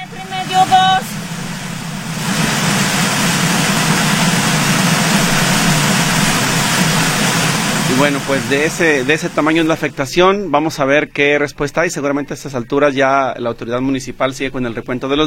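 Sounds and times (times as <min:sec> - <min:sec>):
floodwater rushing, dragging vehicles: 0:00.0 - 0:10.2
speech: 0:08.0 - 0:15.2.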